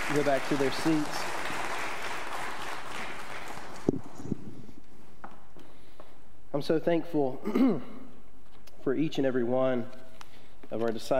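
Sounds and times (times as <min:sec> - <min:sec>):
audience applause: 0:00.0 - 0:04.2
speech: 0:00.1 - 0:01.4, 0:06.6 - 0:08.0, 0:08.8 - 0:10.0, 0:10.7 - 0:11.1.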